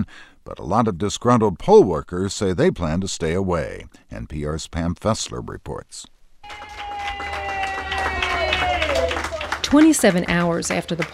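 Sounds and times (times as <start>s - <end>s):
speech: 0.0s - 6.9s, 9.7s - 11.1s
workers cheering at a Broward County election warehouse: 6.4s - 11.1s.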